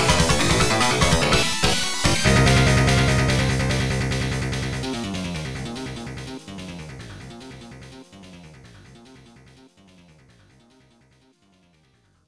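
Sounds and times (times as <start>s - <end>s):
funky track: 0.0s - 6.9s.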